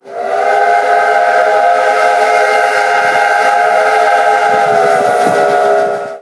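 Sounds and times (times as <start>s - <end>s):
horn: 0.2s - 6.2s.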